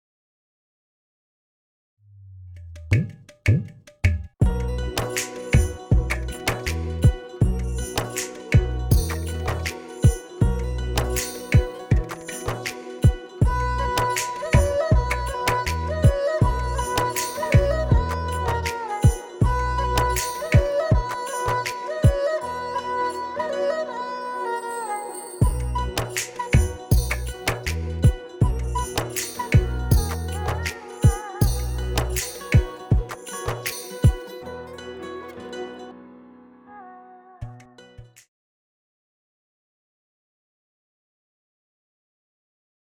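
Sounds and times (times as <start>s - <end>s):
Haryanvi song: 4.4s - 37.6s.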